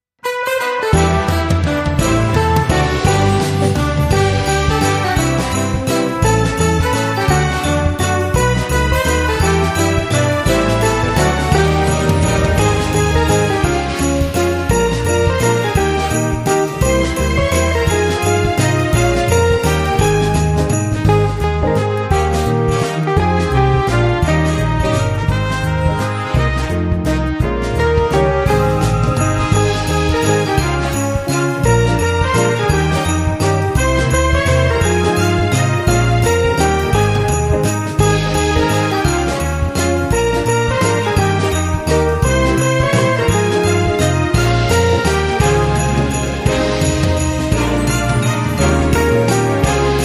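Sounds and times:
jazz Christmas carol: 0.3s - 50.0s.

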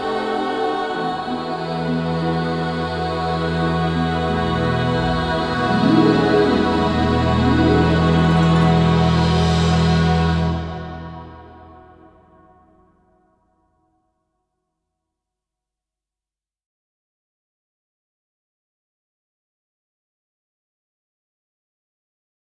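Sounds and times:
orchestral music: 0.0s - 12.4s.

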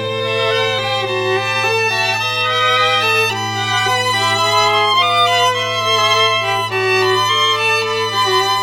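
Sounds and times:
morning music: 0.1s - 8.4s.

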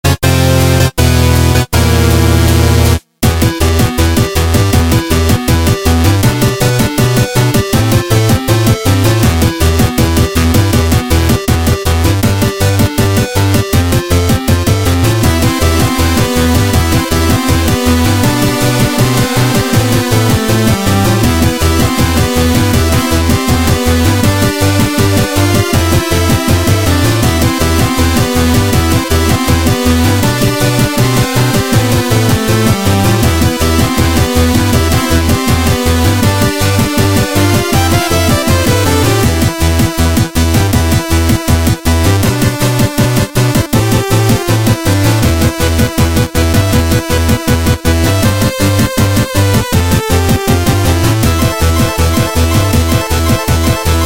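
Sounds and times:
lich battle music: 0.0s - 54.0s.

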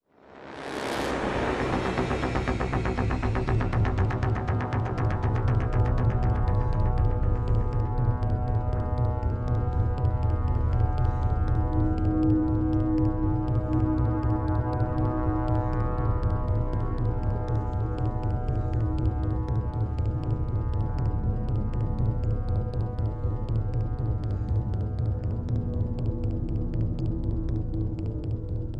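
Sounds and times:
soundtrack drone: 0.1s - 28.7s.

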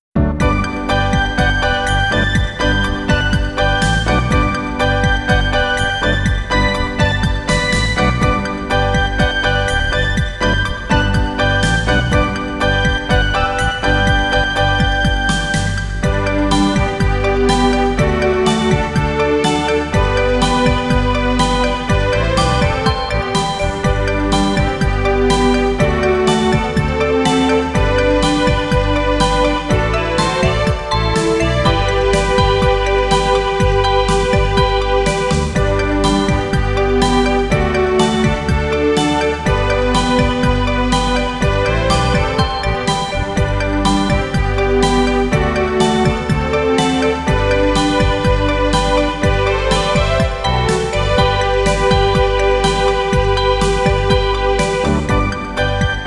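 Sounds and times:
instrumental music: 0.0s - 56.0s.

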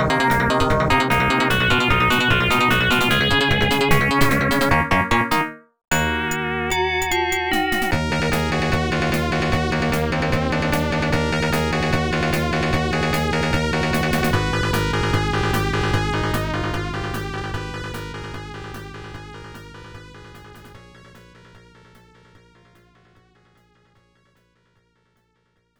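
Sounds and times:
battle music: 0.0s - 18.1s.

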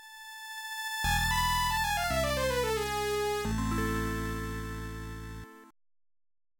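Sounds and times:
music jingle: 1.1s - 5.7s.

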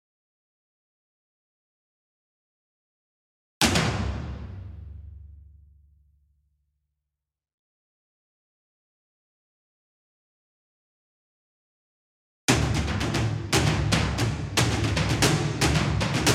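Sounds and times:
instrumental tom drums: 3.6s - 5.5s, 12.5s - 16.3s.

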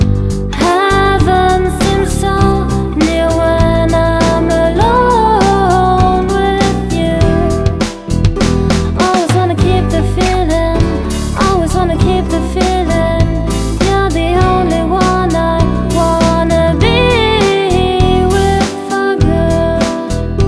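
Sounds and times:
guitar on tape: 0.0s - 20.4s.

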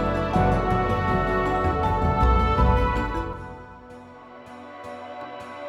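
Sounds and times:
music loop: 0.0s - 4.4s.

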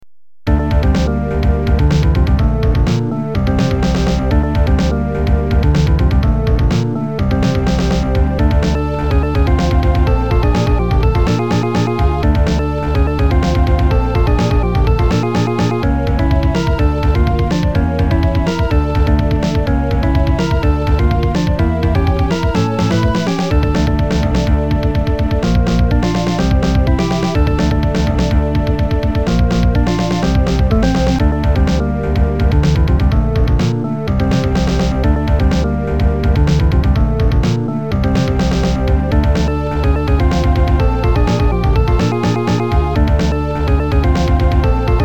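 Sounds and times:
level 1 game background music: 0.5s - 45.0s.

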